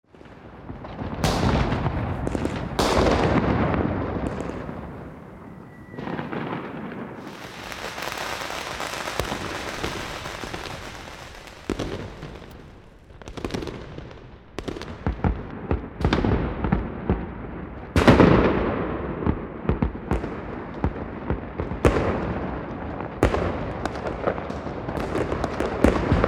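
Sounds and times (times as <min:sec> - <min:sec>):
fireworks: 0:00.1 - 0:26.2.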